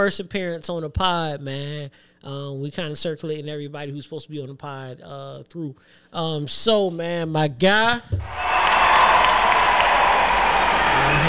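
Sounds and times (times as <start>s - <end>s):
speech: 0.0s - 8.5s
crowd cheering: 8.2s - 11.2s
applause: 8.3s - 11.2s.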